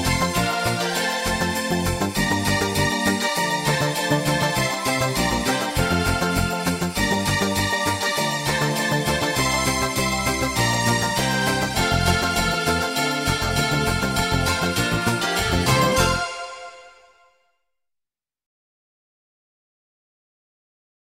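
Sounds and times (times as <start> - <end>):
Christmas song without drums: 0.0 - 17.5.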